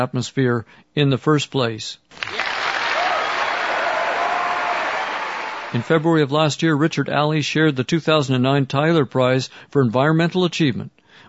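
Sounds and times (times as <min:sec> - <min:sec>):
speech: 0:00.0 - 0:02.4, 0:05.7 - 0:11.0
audience applause: 0:02.2 - 0:05.9.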